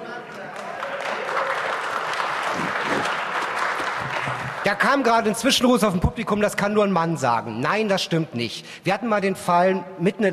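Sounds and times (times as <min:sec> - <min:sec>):
audience applause: 0:00.0 - 0:05.4
speech: 0:04.7 - 0:10.3.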